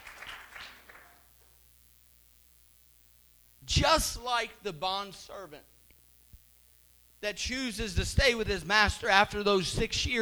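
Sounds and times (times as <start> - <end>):
audience clapping hands: 0.0 - 1.3
speech: 3.7 - 5.7, 7.2 - 10.1.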